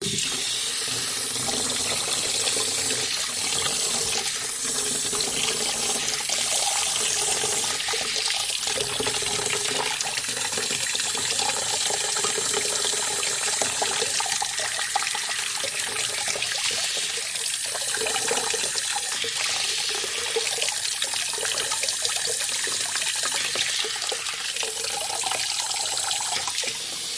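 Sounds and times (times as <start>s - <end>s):
utility room sink filling a plastic bucket with water: 0.0s - 27.1s.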